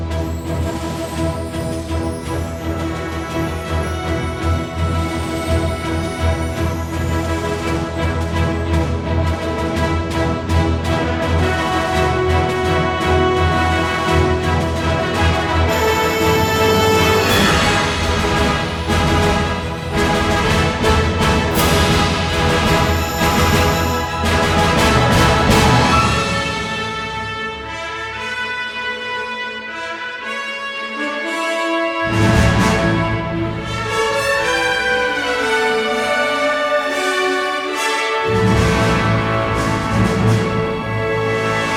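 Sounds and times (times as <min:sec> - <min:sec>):
fanfare: 0:00.2 - 0:41.7.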